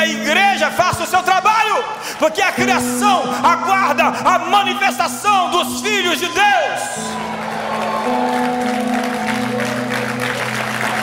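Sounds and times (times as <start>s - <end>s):
speech: 0.6s - 1.4s, 2.2s - 7.3s
audience applause: 7.0s - 11.0s.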